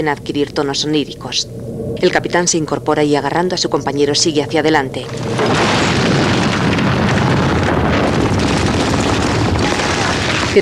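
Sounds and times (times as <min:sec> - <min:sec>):
speech: 0:00.0 - 0:06.4
explosion: 0:05.0 - 0:10.5.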